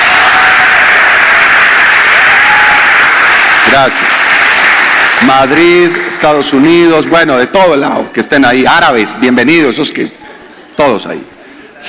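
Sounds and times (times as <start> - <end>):
audience applause: 0.0 - 7.2
speech: 3.7 - 4.2, 5.2 - 10.2, 10.8 - 11.8.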